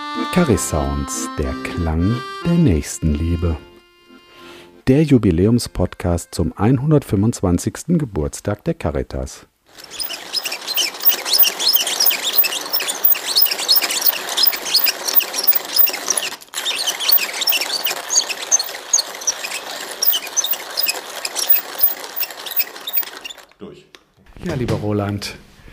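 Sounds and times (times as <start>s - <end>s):
speech: 0.4s - 3.7s, 4.9s - 10.5s, 24.4s - 25.5s
old hand-crank coffee grinder being turned: 9.7s - 23.6s.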